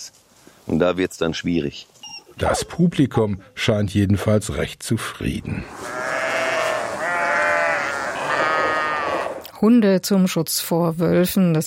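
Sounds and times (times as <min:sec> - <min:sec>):
speech: 0:00.0 - 0:05.9, 0:09.6 - 0:11.6
sheep bleating in a herd: 0:05.7 - 0:09.5.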